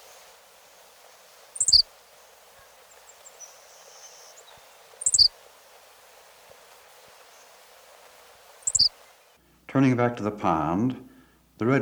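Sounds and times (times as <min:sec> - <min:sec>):
Henslow's sparrow insect-like night call: 0:00.0 - 0:09.3
speech: 0:09.7 - 0:11.8.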